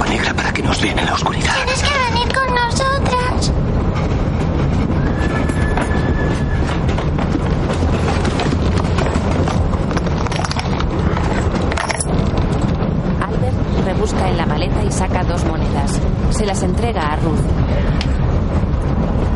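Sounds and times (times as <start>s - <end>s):
train running on rails: 0.0s - 19.3s
speech: 0.2s - 1.9s
metallic squeals: 4.9s - 6.9s.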